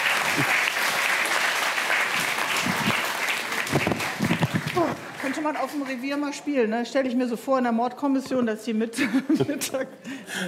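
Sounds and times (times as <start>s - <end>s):
applause: 0.0s - 6.2s
speech: 0.4s - 0.6s, 5.4s - 10.4s.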